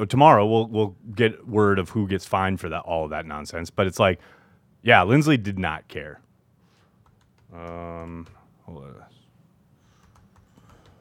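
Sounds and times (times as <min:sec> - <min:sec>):
speech: 0:00.0 - 0:06.2, 0:07.5 - 0:09.2
keyboard typing a tweet: 0:07.0 - 0:08.5, 0:09.9 - 0:10.9.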